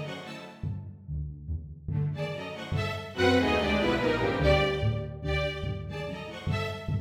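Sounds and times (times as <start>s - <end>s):
waltz music: 0.0s - 0.6s, 2.0s - 6.9s.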